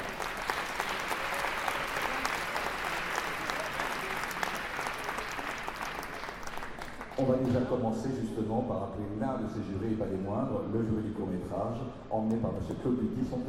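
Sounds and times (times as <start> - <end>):
applause from a large audience: 0.0 - 7.3
speech: 7.2 - 13.4.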